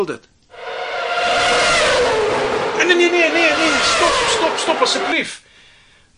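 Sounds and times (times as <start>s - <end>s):
speech: 0.0s - 0.3s, 2.9s - 5.4s
race car engine revving alarm tone: 0.6s - 5.4s.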